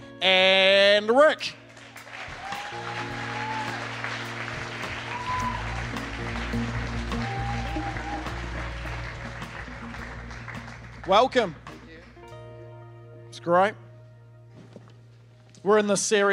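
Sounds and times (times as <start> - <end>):
sustained low musical backing: 0.0 - 16.3
speech: 0.2 - 1.6, 11.1 - 11.6, 13.4 - 13.8, 15.6 - 16.3
audience clapping to welcome three guests onto the stage: 1.6 - 12.3.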